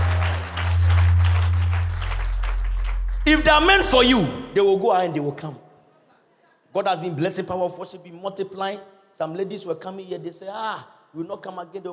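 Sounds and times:
audience clapping: 0.0s - 4.3s
loud steady low drone of bass tones: 0.0s - 4.8s
speech: 3.3s - 5.6s, 6.8s - 11.9s.

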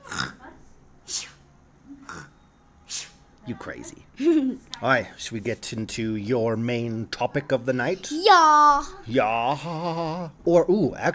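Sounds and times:
person imitating snoring: 0.0s - 0.4s, 2.0s - 2.3s
speech: 3.5s - 11.1s.

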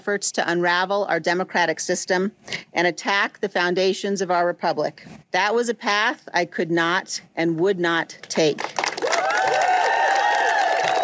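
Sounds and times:
speech: 0.0s - 8.8s
audience clapping: 8.3s - 11.0s.

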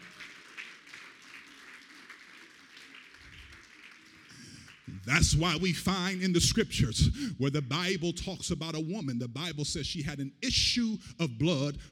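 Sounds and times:
audience clapping hands: 0.0s - 6.1s
speech: 5.1s - 11.8s.

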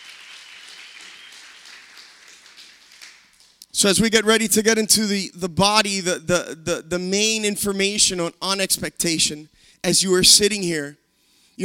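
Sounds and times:
audience clapping: 0.0s - 3.8s
speech: 3.8s - 11.0s.

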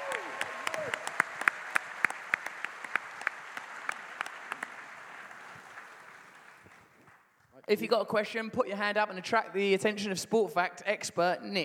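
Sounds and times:
audience applause: 0.0s - 7.2s
speech: 7.7s - 11.6s.

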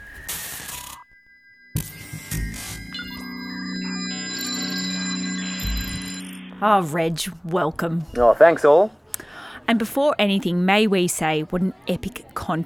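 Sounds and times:
electronic telephone call tone: 1.0s - 7.2s
layered electronic tones: 1.6s - 8.2s
speech: 6.6s - 9.0s, 9.7s - 12.6s.

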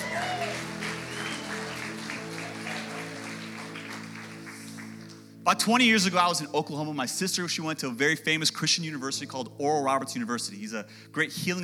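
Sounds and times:
audience round of applause: 0.0s - 5.3s
speech: 5.5s - 11.6s.

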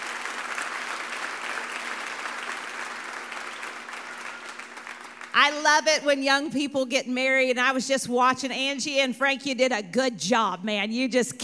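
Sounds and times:
audience applause: 0.0s - 5.4s
speech: 5.4s - 11.4s.

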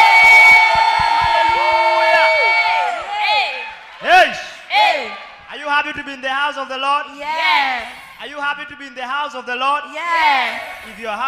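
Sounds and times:
audience cheering and clapping in praise: 0.0s - 5.5s
speech: 6.5s - 11.2s.

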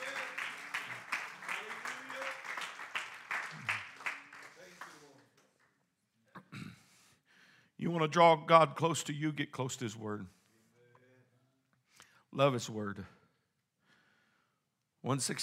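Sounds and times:
audience hand clapping: 0.0s - 5.8s
speech: 7.8s - 10.4s, 12.4s - 13.2s, 15.0s - 15.4s.

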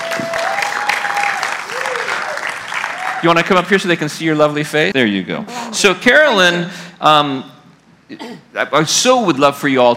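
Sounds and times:
audience applause: 0.0s - 4.1s
speech: 3.2s - 9.9s.

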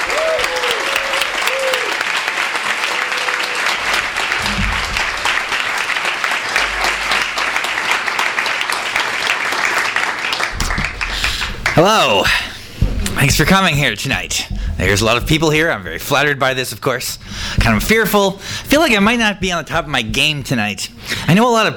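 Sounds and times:
audience applauding for arriving guest: 0.0s - 12.4s
speech: 11.8s - 12.5s, 13.2s - 21.7s.

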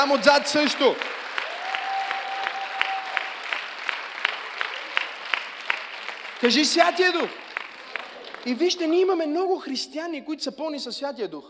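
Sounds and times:
speech: 0.0s - 1.2s, 6.4s - 7.4s, 8.4s - 11.4s
audience applause: 0.0s - 9.0s.

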